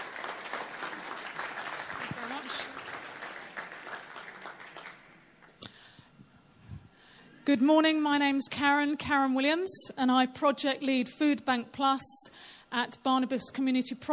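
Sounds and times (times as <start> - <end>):
audience applause at a community session: 0.0 - 5.5
speech: 7.5 - 14.1.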